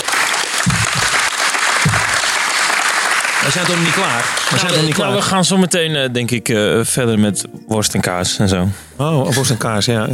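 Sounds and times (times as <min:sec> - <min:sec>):
audience applause: 0:00.0 - 0:05.6
speech: 0:03.4 - 0:10.1.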